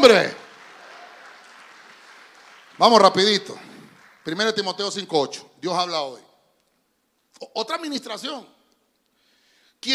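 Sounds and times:
speech: 0.0 - 0.4, 2.8 - 6.3, 7.4 - 8.6, 9.8 - 9.9
crowd audience clapping hands loudly: 0.0 - 5.2.

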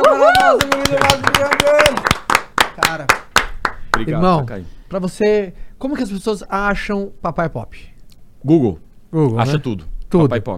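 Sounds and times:
voices cheering and calling out: 0.0 - 2.1
hand claps from a few people: 0.0 - 4.1
speech: 0.5 - 2.1, 2.9 - 3.2, 4.0 - 10.5.

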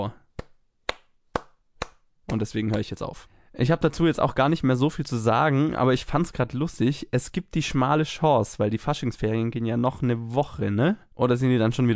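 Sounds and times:
speech: 0.0 - 0.2, 2.3 - 11.9
applause sound effect added in editing: 0.3 - 3.0.

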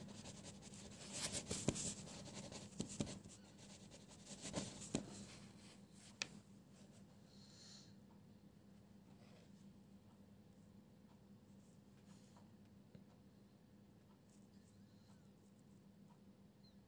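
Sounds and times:
page sounds: 0.0 - 5.4
pencil scribbling: 0.0 - 5.4.

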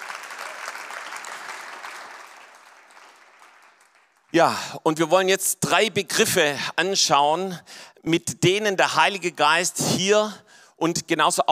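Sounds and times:
audience applause: 0.0 - 4.3
speech: 4.3 - 11.5.

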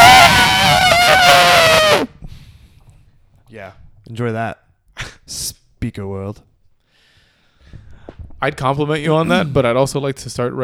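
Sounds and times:
voice imitating elephant trumpeting: 0.0 - 2.1
speech: 4.1 - 6.5, 8.4 - 10.6.

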